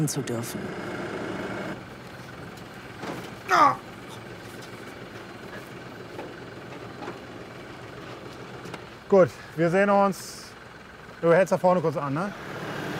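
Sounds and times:
speech: 0:00.0 - 0:01.0, 0:03.5 - 0:03.9, 0:09.1 - 0:10.4, 0:11.2 - 0:12.6
tractor engine running: 0:00.0 - 0:12.9
person exclaiming: 0:03.5 - 0:03.9.

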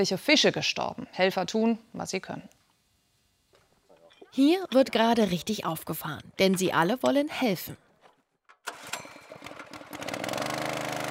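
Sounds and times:
speech: 0:00.0 - 0:02.6, 0:04.3 - 0:07.8
engine-driven water pump running: 0:09.3 - 0:11.0.

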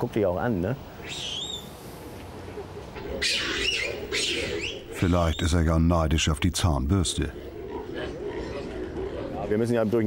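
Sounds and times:
speech: 0:00.0 - 0:01.4, 0:03.2 - 0:07.5, 0:09.5 - 0:10.0
monkeys calling at a zoo: 0:02.4 - 0:10.0.

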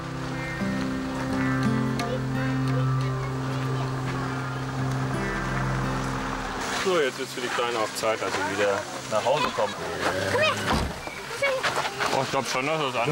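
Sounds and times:
approaching car engine droning: 0:00.0 - 0:09.2
speech: 0:06.9 - 0:11.6, 0:12.2 - 0:13.1.

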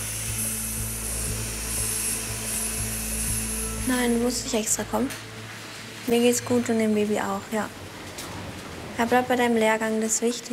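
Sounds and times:
surgical drill running: 0:00.0 - 0:04.9
faint rhythmic ticking: 0:00.0 - 0:05.5
speech: 0:03.9 - 0:05.3, 0:06.1 - 0:07.9, 0:09.0 - 0:10.5.

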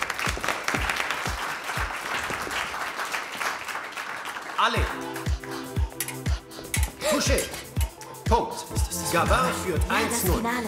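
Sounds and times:
audience applause: 0:00.0 - 0:05.6
speech: 0:04.6 - 0:05.3, 0:07.1 - 0:07.6, 0:08.3 - 0:10.6.

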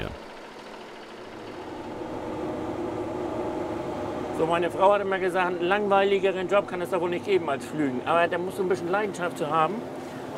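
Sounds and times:
tractor engine running: 0:00.0 - 0:07.5
speech: 0:04.4 - 0:10.3.

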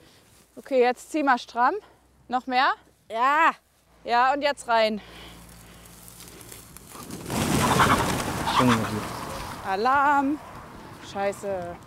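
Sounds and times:
speech: 0:00.6 - 0:05.3, 0:08.6 - 0:09.0, 0:09.6 - 0:10.5, 0:11.1 - 0:11.8
startled chickens squawking and clucking: 0:06.9 - 0:09.7.

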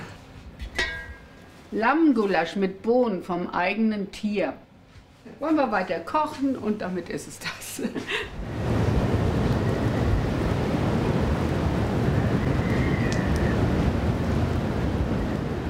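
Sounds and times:
speech: 0:01.7 - 0:04.6, 0:05.2 - 0:08.7
howling wind of northwest storm with hurricane-force gusts: 0:08.3 - 0:15.6
crashing surf: 0:08.4 - 0:15.6.

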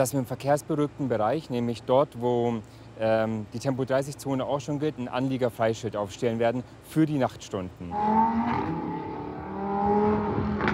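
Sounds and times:
speech: 0:00.0 - 0:09.0
car engines revving and racing: 0:07.8 - 0:10.7.

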